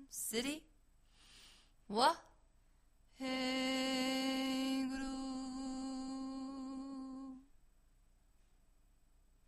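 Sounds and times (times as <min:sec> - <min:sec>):
chanted mantra: 0:03.2 - 0:07.5.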